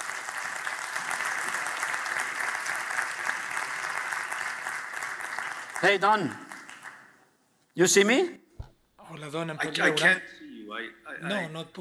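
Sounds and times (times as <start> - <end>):
audience applause: 0.0 - 7.3
speech: 5.8 - 6.4, 7.8 - 8.4, 9.2 - 11.7.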